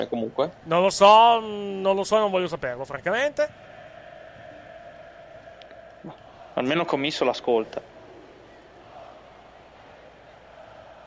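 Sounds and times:
speech: 0.0 - 3.7, 6.0 - 7.9
football fans singing in a stadium: 3.5 - 11.0.

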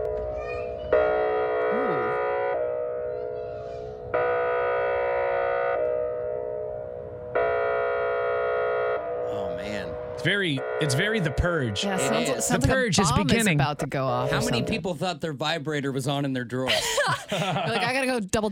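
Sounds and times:
chord-like wail blaring: 0.0 - 13.4, 14.0 - 14.8
tsunami warning siren droning: 0.9 - 13.3, 14.1 - 14.8
speech: 10.2 - 18.4
laughter: 16.6 - 18.1.

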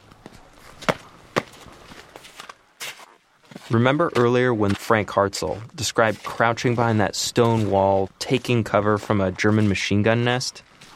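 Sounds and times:
footsteps on frosty black tarmac in snow: 0.0 - 10.9
speech: 3.7 - 10.7.

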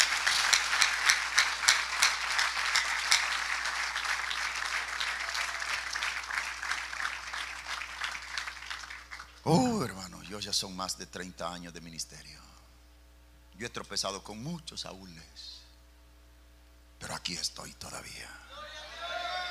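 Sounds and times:
church congregation applause during a service: 0.0 - 9.9, 18.6 - 19.5
speech: 10.4 - 12.5, 13.6 - 15.6, 17.3 - 18.4.

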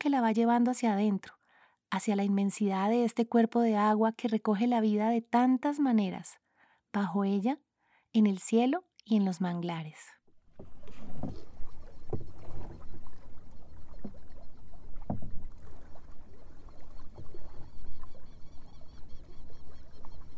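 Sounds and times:
speech: 0.1 - 10.2
canoe gliding through a lagoon: 10.3 - 20.3
birds singing at a lagoon: 11.2 - 20.3.

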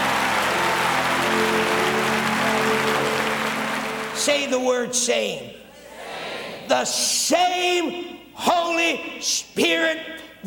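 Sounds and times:
audience clapping: 0.0 - 4.8
speech: 4.2 - 5.6, 6.7 - 10.4.

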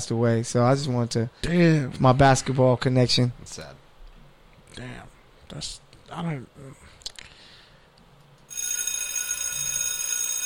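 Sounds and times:
speech: 0.0 - 3.8, 4.8 - 6.9
bell ringing: 8.5 - 10.4.

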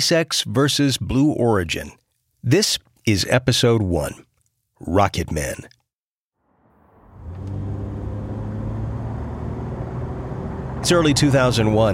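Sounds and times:
speech: 0.0 - 5.8, 10.8 - 11.9
car driving down the Long Island Expressway in Queens, New York: 6.5 - 11.9.

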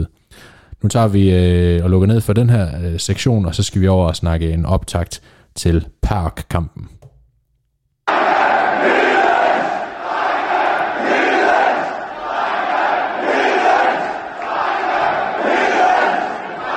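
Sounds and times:
speech: 0.3 - 7.0
football stadium crowd chanting in unison: 8.1 - 16.7.

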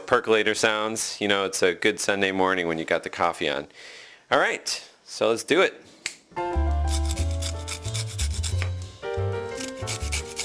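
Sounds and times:
speech: 0.1 - 7.0
grating lemon zest: 6.5 - 10.4.

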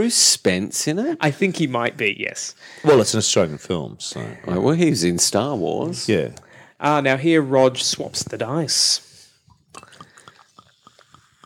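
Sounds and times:
speech: 0.0 - 9.1
liquid glugging into a glass: 9.4 - 11.4.

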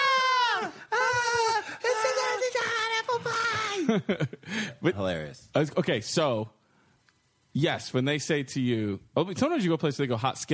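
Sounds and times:
voice imitating kids screaming in pain: 0.0 - 3.9
speech: 3.9 - 6.6, 7.6 - 10.5.

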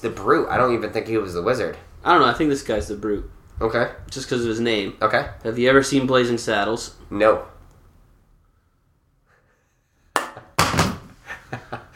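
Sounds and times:
speech: 0.0 - 7.6
iPhone dropped on the floor: 10.6 - 11.1.

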